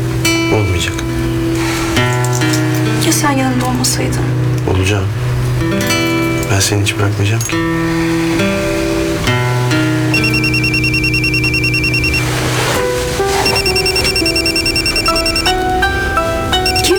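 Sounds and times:
sustained musical tones: 0.0s - 16.9s
speech: 0.5s - 1.2s, 3.1s - 8.6s
telephone ringing with electronic trilling: 10.1s - 16.9s.

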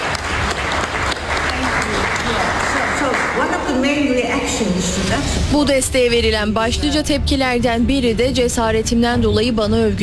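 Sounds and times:
colleagues applauding Navi Pillay: 0.0s - 3.6s
speech: 3.7s - 10.0s.

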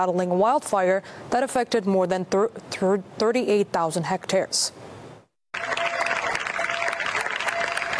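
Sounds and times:
speech: 0.0s - 4.9s
residents applauding departing military emergency crews in Niebla: 5.5s - 7.9s.

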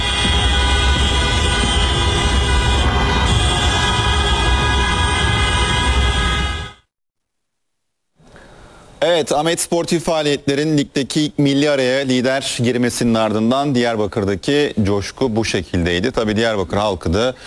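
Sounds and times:
car horns honking in a celebration convoy: 0.0s - 6.8s
traffic noise: 0.0s - 6.8s
speech: 9.2s - 17.4s.

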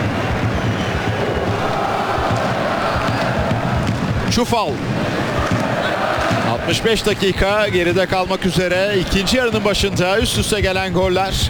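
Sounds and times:
stadium crowd at the Fortuna Arena in Prague applauding a football player: 0.0s - 11.3s
speech: 4.4s - 5.0s, 6.5s - 11.4s.

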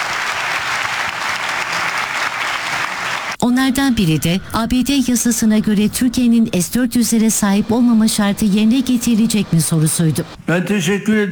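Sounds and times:
applause at Erdoğan's press conference after the NATO leaders' summit: 0.0s - 3.4s
speech: 3.4s - 11.3s.

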